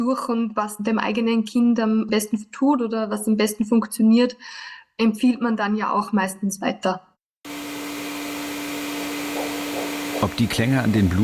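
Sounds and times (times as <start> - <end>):
speech: 0.0 - 7.1, 10.2 - 11.2
running vacuum cleaner: 7.5 - 11.2.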